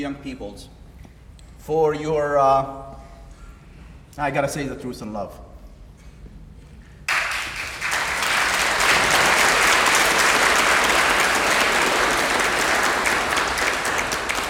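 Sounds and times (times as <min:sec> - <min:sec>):
speech: 0:00.0 - 0:00.8, 0:01.6 - 0:03.0, 0:04.2 - 0:05.4
crowd applauding: 0:07.1 - 0:14.4.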